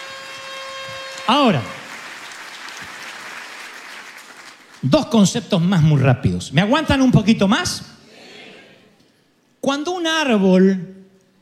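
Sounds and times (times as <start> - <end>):
audience applause at a church service: 0.0 - 4.8
speech: 1.3 - 1.8, 4.8 - 7.9, 9.7 - 11.0.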